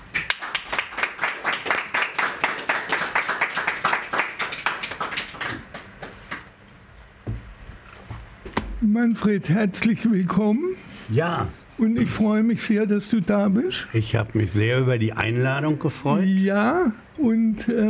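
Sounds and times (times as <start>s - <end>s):
audience applause: 0.0s - 6.5s
speech: 8.9s - 17.8s.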